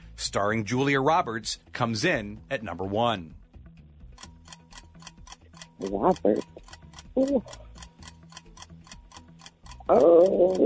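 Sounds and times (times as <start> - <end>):
speech: 0.2 - 3.4, 5.8 - 6.6, 7.2 - 7.6, 9.9 - 10.6
quiz timer ticking: 2.6 - 10.6.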